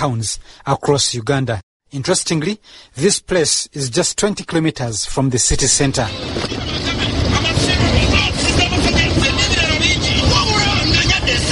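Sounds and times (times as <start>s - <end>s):
speech: 0.0s - 7.6s
truck and street traffic and engine rumble: 5.6s - 11.5s
indistinct voices chattering: 6.1s - 11.5s.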